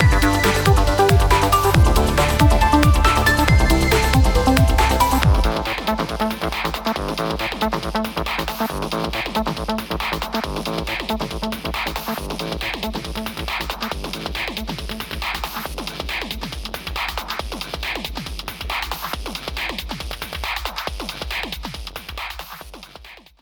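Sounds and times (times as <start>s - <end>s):
acid electronic music at 138 bpm: 0.0s - 16.2s.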